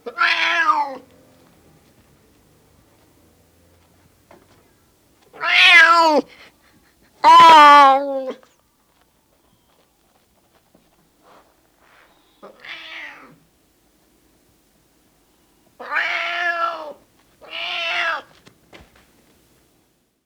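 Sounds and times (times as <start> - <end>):
male cat meowing: 0.0 - 1.0, 5.4 - 6.3, 7.2 - 8.4, 12.4 - 13.4, 15.8 - 18.3.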